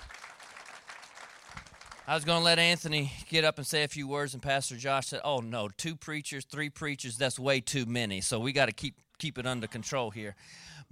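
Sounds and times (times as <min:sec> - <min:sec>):
audience clapping: 0:00.0 - 0:02.5
speech: 0:02.1 - 0:10.8.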